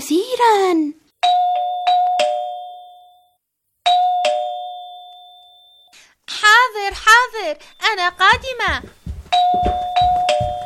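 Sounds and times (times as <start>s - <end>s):
speech: 0.1s - 1.0s, 7.4s - 9.9s
doorbell ringing: 1.2s - 5.9s, 9.3s - 10.6s.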